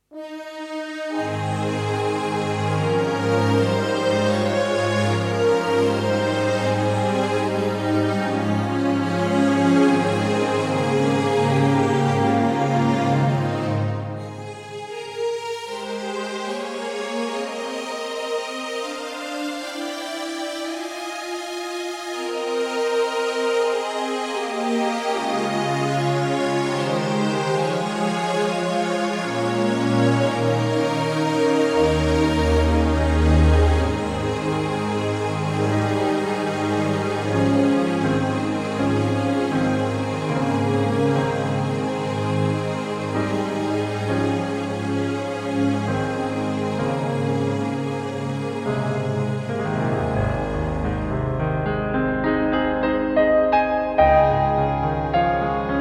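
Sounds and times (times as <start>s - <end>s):
music: 0.0s - 55.7s.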